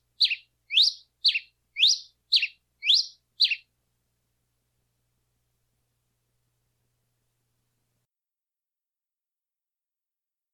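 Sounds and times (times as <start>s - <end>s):
singing: 0.2s - 3.7s.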